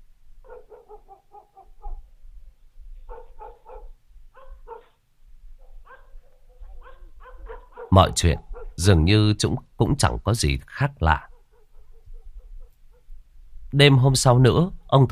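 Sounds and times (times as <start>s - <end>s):
dog barking at night in a village: 0.4s - 2.1s, 3.1s - 5.0s, 5.6s - 8.8s, 11.2s - 13.1s
speech: 7.9s - 11.3s, 13.8s - 15.0s.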